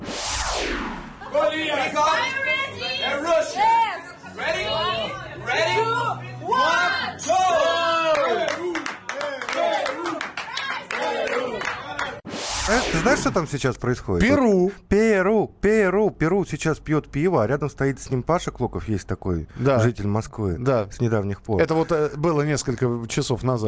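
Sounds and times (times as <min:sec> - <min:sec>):
football fans cheering and shouting in a bar: 0:01.2 - 0:12.2
speech: 0:01.5 - 0:02.4, 0:12.7 - 0:23.6
scattered clapping: 0:08.1 - 0:12.2.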